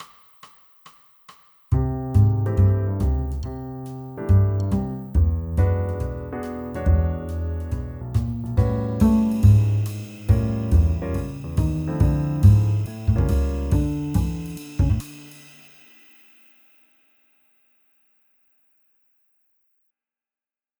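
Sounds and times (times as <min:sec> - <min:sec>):
bass: 0:01.7 - 0:15.1.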